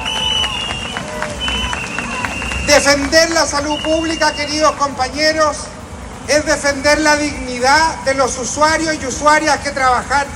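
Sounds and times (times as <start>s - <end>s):
sustained whistle-like tone: 0.0s - 4.8s, 6.6s - 7.7s
crowd applause: 0.0s - 5.0s
voices cheering: 0.0s - 5.4s
speech: 2.8s - 5.7s, 6.3s - 10.3s.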